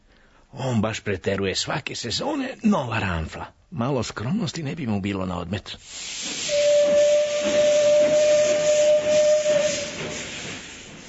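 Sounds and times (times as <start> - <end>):
speech: 0.5 - 6.2
steam train whistle as it departs: 6.2 - 11.0.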